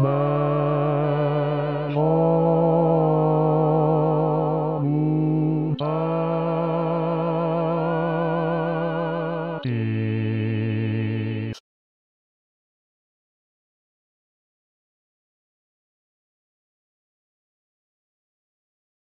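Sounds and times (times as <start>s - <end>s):
bass voice singing a Christmas oratorio: 0.0s - 11.6s.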